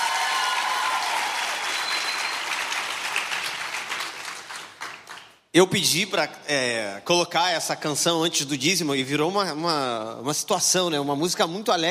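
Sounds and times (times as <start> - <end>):
audience applause: 0.0 - 5.3
speech: 5.5 - 11.9.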